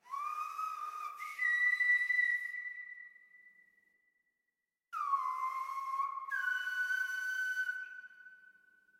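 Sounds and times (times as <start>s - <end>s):
Silbo gomero whistled language: 0.0s - 4.0s, 5.0s - 8.9s.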